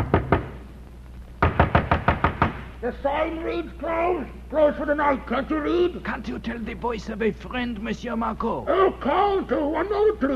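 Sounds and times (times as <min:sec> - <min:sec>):
knocking on an innkeeper's wooden door: 0:00.0 - 0:00.6, 0:01.4 - 0:02.6
speech: 0:02.8 - 0:10.3.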